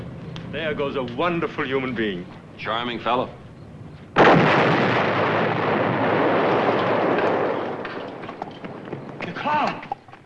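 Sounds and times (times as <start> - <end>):
speech: 0.7 - 3.4
car bomb explosion: 4.1 - 9.0
crackling debris: 4.1 - 10.2.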